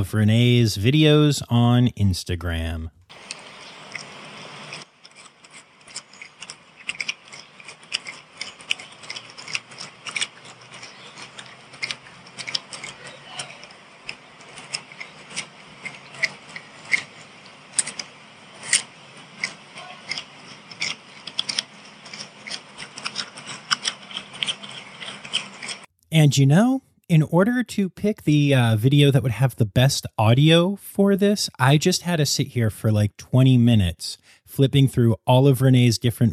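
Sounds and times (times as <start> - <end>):
speech: 0.0 - 3.3, 26.2 - 36.3
soft hiss: 3.1 - 4.8
pet crunching food: 3.1 - 25.9.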